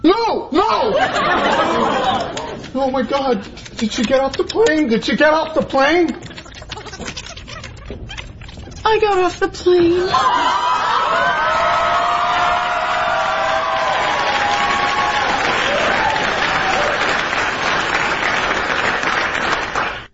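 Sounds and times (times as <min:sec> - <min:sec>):
speech: 0:00.0 - 0:01.5, 0:02.8 - 0:06.3, 0:08.9 - 0:11.8
laughter: 0:00.8 - 0:02.8, 0:06.2 - 0:07.9
audience applause: 0:01.4 - 0:02.7, 0:10.1 - 0:20.1.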